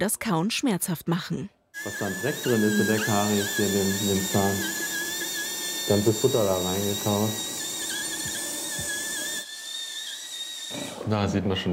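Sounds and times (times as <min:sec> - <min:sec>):
speech: 0:00.0 - 0:04.8, 0:05.9 - 0:07.5, 0:11.1 - 0:11.7
dental drill on a horse's tooth: 0:01.8 - 0:11.7.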